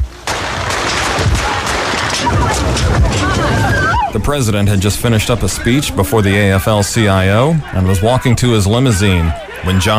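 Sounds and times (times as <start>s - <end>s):
noisy commotion: 0.0s - 9.9s
gunshots fired at President Reagan outside a Washington, D.C. hotel: 0.1s - 4.0s
laughter: 2.2s - 9.9s
speech: 4.1s - 9.9s.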